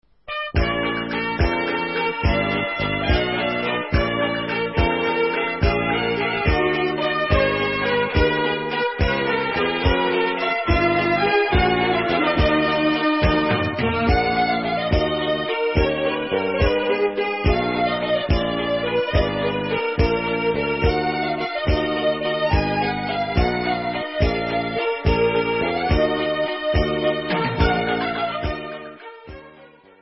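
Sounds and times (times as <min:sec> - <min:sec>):
instrumental waltz: 0:00.2 - 0:29.9.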